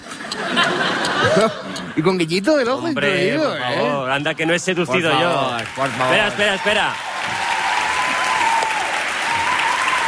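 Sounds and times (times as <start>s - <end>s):
laughter: 0.0s - 2.2s
speech: 1.3s - 7.5s
audience applause: 4.9s - 10.0s.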